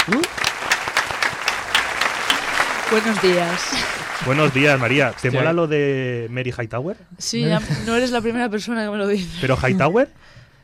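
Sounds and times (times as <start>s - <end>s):
audience applause: 0.0s - 5.7s
speech: 0.1s - 0.3s, 2.9s - 10.4s.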